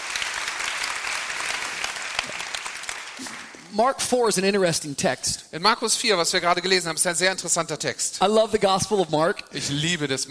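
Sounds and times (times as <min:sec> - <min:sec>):
audience clapping: 0:00.0 - 0:03.8
speech: 0:03.7 - 0:10.2.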